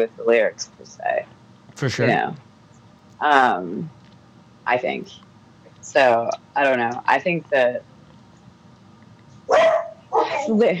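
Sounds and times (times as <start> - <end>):
speech: 0.0 - 2.5, 3.2 - 4.0, 4.7 - 5.2, 5.8 - 7.9, 10.4 - 10.7
dog barking at home: 9.5 - 10.4.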